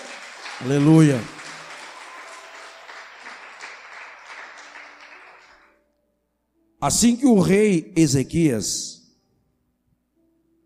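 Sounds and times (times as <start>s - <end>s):
audience applauding: 0.0s - 5.8s
speech: 0.6s - 1.4s, 6.8s - 9.0s.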